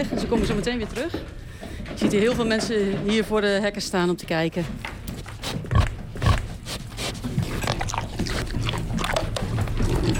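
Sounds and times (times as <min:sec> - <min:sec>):
speech: 0:00.0 - 0:04.9
pig smacking while eating: 0:04.8 - 0:10.1
pig grunting: 0:05.4 - 0:10.1.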